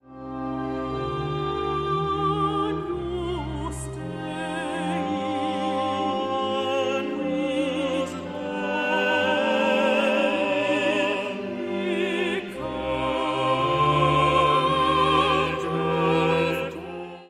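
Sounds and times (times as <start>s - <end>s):
vocal soloists singing: 0.2s - 17.2s.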